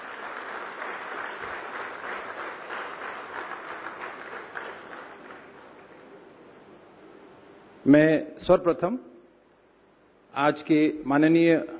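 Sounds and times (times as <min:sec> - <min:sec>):
audience applause welcoming the chief guest at a formal function: 0:00.0 - 0:06.0
speech: 0:07.8 - 0:09.1, 0:10.4 - 0:11.7.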